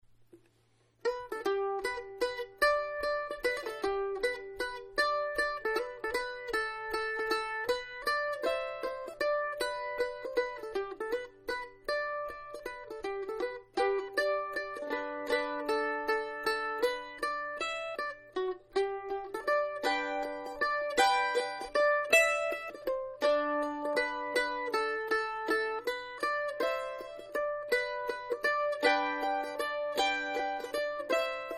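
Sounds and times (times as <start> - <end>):
bush banjo waltz: 0.4 - 31.5.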